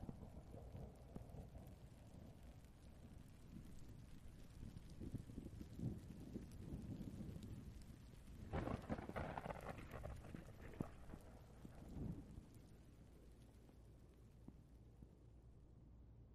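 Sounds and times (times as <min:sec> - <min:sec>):
thunder rumbling: 0:00.0 - 0:15.0
rain hissing: 0:02.5 - 0:14.8.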